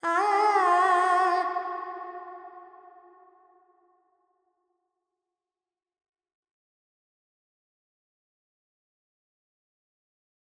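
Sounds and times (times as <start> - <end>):
woman singing Carnatic pentatonic alap in G: 0.0 - 2.4.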